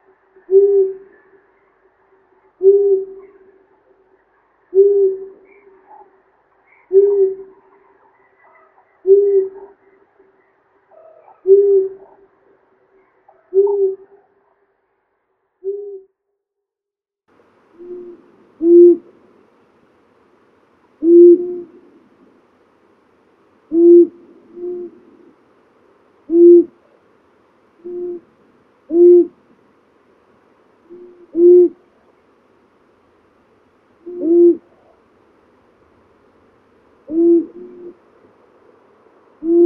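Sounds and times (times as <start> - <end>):
Asio otus long-eared owl: 0.0 - 14.7, 15.6 - 16.1, 17.7 - 19.2, 21.0 - 22.3, 23.7 - 25.5, 26.2 - 27.1, 27.8 - 29.5, 30.8 - 32.2, 34.0 - 35.1, 37.0 - 39.6
nature sounds: 0.0 - 16.1, 17.3 - 39.6.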